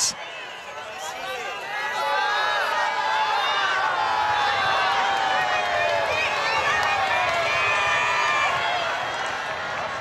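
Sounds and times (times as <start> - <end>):
crowd chatter on St. Peter's Square at the papal general audience: 0.0 - 2.8
crowd cheering on St. Peter's Square: 0.0 - 10.0.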